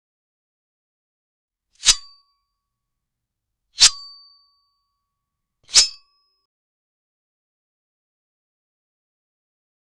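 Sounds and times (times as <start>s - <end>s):
sword unsheathing: 1.8s - 2.2s, 3.8s - 4.2s, 5.7s - 6.1s.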